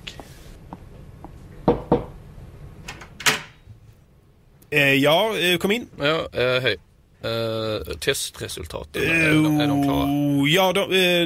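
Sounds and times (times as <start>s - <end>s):
firm knocks on a door: 1.6s - 2.2s
speech: 4.7s - 11.2s.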